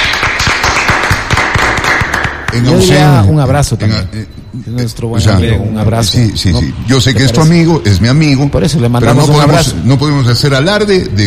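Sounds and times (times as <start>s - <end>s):
crowd applause: 0.0s - 3.0s
speech: 2.5s - 11.2s.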